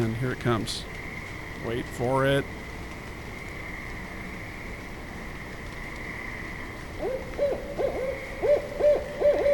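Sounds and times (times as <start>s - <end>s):
speech: 0.0s - 1.0s, 1.6s - 2.6s
barred owl hooting: 7.0s - 9.5s.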